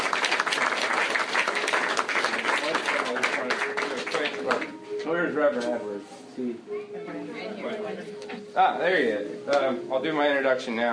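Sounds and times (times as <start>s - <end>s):
audience applause: 0.0s - 4.7s
speech: 5.3s - 10.9s.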